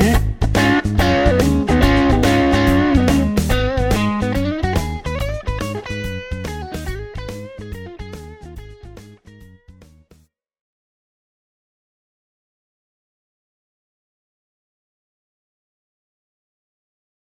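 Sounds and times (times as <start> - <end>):
crunchy Strat electric guitar on neck and middle pickups: 0.0 - 10.0.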